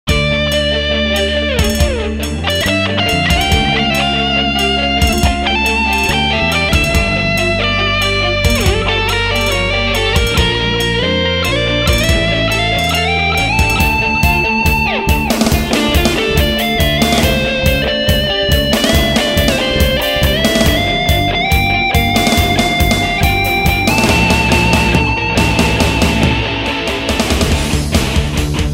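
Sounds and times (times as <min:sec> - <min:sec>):
instrumental music: 0:00.1 - 0:28.7.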